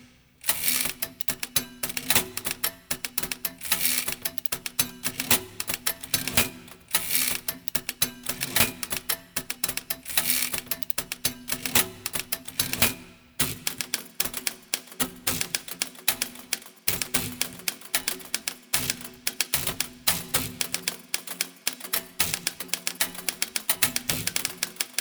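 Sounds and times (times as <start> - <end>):
typewriter sonata: 0.5 - 20.9, 21.9 - 24.9.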